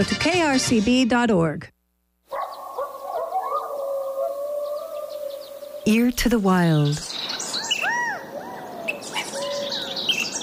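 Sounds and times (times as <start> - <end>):
speech: 0.0 - 1.7, 5.8 - 7.2
California quail call: 2.3 - 6.1, 7.5 - 10.3.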